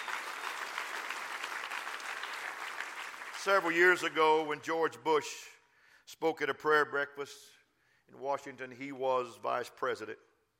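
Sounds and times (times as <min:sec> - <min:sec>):
audience clapping: 0:00.0 - 0:04.2
speech: 0:03.4 - 0:10.3.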